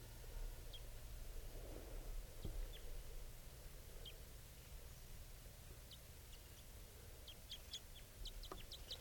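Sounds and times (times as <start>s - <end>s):
low outdoor rumble: 0.0s - 9.0s
male bird chittering on approach: 7.3s - 9.0s.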